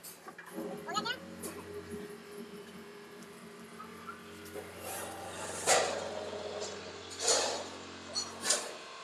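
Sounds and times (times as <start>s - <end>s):
50 ton baling press machine humming: 0.4s - 8.9s
grinding, rattling and clattering: 4.4s - 8.9s.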